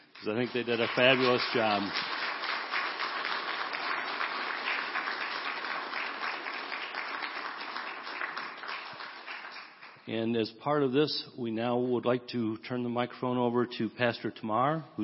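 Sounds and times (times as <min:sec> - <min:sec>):
audience applause: 0:00.0 - 0:10.0
speech: 0:00.2 - 0:02.2, 0:10.1 - 0:15.0.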